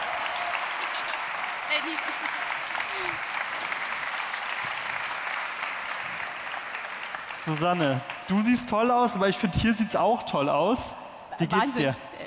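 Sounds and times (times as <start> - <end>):
audience applause: 0.0 - 9.4
speech: 1.7 - 3.3, 7.4 - 12.1.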